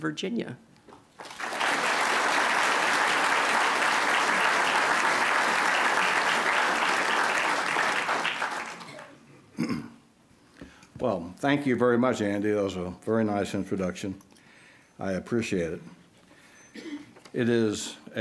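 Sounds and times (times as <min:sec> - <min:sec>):
speech: 0:00.0 - 0:01.3, 0:11.4 - 0:14.3, 0:15.0 - 0:16.0, 0:16.8 - 0:18.1
audience applause welcoming a lecture speaker: 0:01.2 - 0:09.2.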